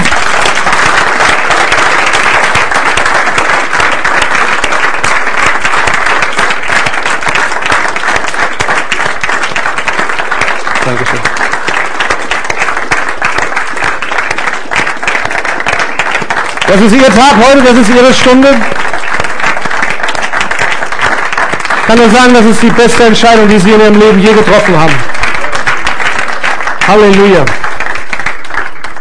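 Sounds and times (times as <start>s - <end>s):
audience applause: 0.0s - 28.9s
speech: 16.7s - 18.9s, 21.9s - 25.2s, 26.9s - 27.7s.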